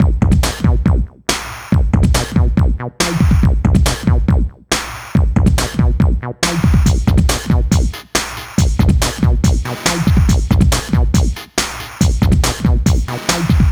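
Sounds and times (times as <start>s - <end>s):
hardcore breakbeat in B major: 0.0s - 13.6s.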